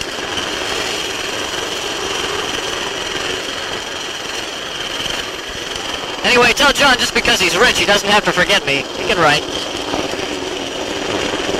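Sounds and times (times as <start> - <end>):
helicopter preparing to take off: 0.0 - 11.5
speech: 6.2 - 9.8.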